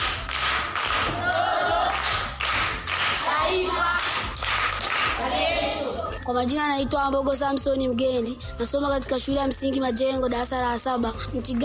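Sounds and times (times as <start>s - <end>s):
audience clapping during a primary school quiz session: 0.0s - 5.3s
speech: 6.3s - 11.6s.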